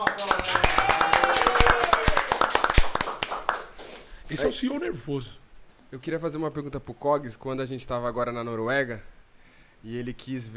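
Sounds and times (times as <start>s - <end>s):
voices cheering: 0.0s - 2.7s
round of applause: 0.0s - 4.1s
speech: 4.3s - 9.2s, 9.8s - 10.5s.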